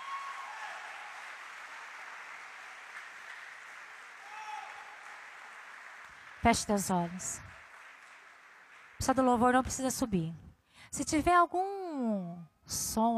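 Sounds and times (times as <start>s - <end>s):
audience applause: 0.0s - 9.3s
speech: 6.4s - 7.6s, 9.0s - 13.1s.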